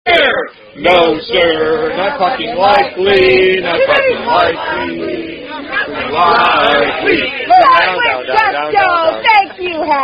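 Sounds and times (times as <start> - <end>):
singing voice: 0.1 - 10.0.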